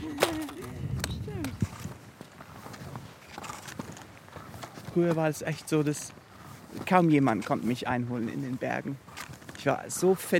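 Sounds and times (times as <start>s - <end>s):
footsteps of people walking in snow: 0.0s - 10.3s
speech: 5.0s - 10.3s.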